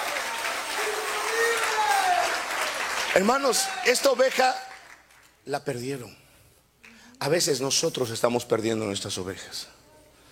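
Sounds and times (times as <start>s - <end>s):
audience applauding: 0.0s - 5.3s
speech: 3.1s - 4.7s, 5.5s - 6.2s, 7.2s - 9.8s.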